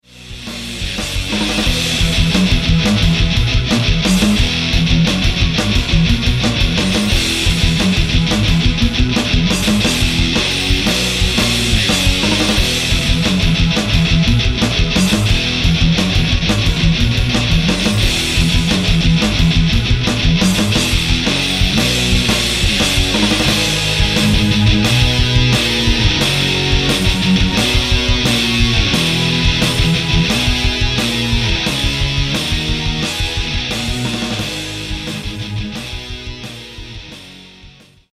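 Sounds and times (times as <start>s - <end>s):
rock music: 0.0s - 38.1s.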